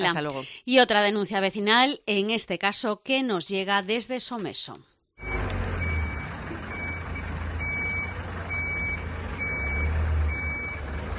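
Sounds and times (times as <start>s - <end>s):
speech: 0.0s - 4.9s
garbage truck diesel engine rumbling: 5.2s - 11.1s
garbage truck reversing alarm beeps: 5.2s - 11.1s.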